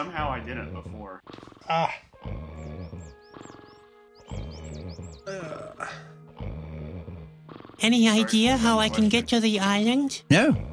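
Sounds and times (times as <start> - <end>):
speech: 0.0 - 2.4, 7.8 - 10.7
creature's loud deep rumbling snore: 0.4 - 3.7, 4.3 - 7.9.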